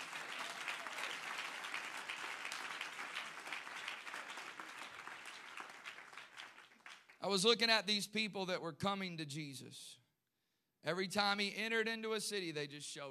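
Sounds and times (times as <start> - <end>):
audience clapping hands: 0.0 - 7.4
speech: 7.2 - 10.0, 10.8 - 13.0.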